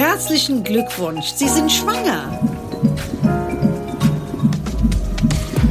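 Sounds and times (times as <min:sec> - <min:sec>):
speech: 0:00.2 - 0:03.1
fetal heartbeat on ultrasound doppler: 0:01.5 - 0:05.6.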